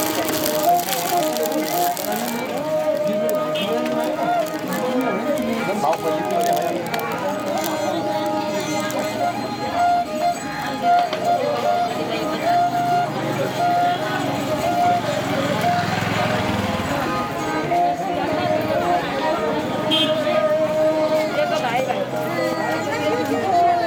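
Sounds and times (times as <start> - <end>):
street musicians playing in Boudha, Kathmandu, Nepal: 0.0 - 23.8.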